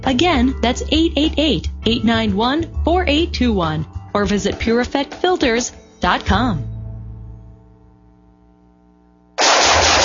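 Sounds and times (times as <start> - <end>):
speech: 0.0 - 6.7
low hum: 6.3 - 10.0
gunfire: 9.4 - 10.0.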